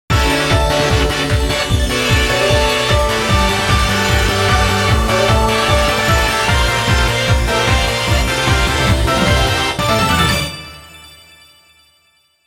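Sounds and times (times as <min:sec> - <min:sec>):
cute background music: 0:00.1 - 0:11.3.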